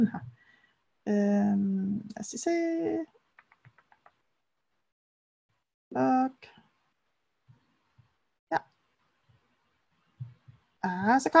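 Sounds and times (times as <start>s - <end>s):
speech: 0.0s - 0.2s, 1.0s - 3.2s, 5.9s - 6.5s, 10.8s - 11.3s
computer mouse clicking: 3.4s - 4.2s.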